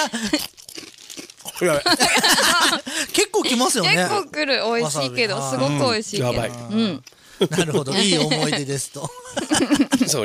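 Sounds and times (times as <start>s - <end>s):
speech: 0.0s - 0.6s, 1.6s - 10.2s
wasabi-flavoured kaki no tane rice crackers crunching: 0.2s - 2.0s
laughter: 1.8s - 3.7s, 7.4s - 10.2s.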